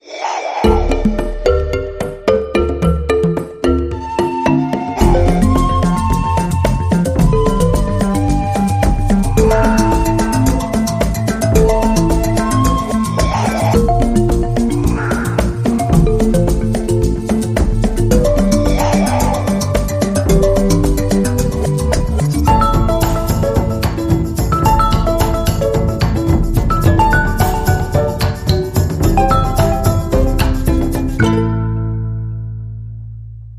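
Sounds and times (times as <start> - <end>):
percussion: 0.0 - 32.2.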